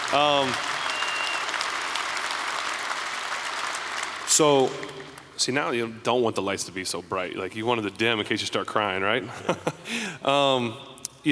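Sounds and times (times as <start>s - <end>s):
audience applause: 0.0s - 5.2s
speech: 0.1s - 0.8s, 4.4s - 11.3s.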